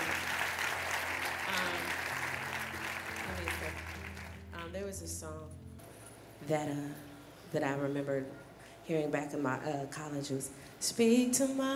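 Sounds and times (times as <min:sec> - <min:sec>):
audience clapping: 0:00.0 - 0:04.6
speech: 0:04.7 - 0:05.6, 0:06.4 - 0:11.7.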